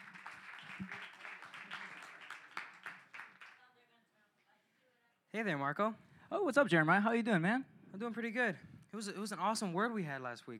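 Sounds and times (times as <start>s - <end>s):
audience clapping: 0.0s - 3.7s
speech: 5.4s - 10.5s.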